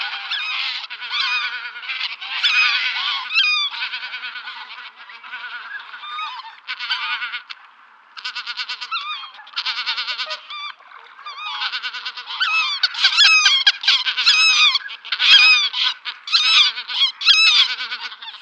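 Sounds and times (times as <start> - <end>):
flock of greater white-fronted geese calling: 0.0 - 18.4.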